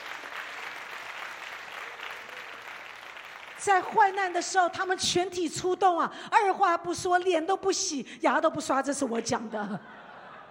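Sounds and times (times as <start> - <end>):
warm applause: 0.0 - 4.4
speech: 3.6 - 10.0
laughter: 9.5 - 10.4.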